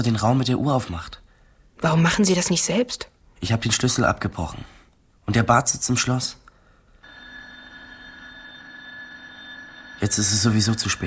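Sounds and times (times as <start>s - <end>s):
speech: 0.0s - 1.2s, 1.8s - 6.4s, 10.0s - 11.0s
school bell ringing: 7.0s - 11.0s.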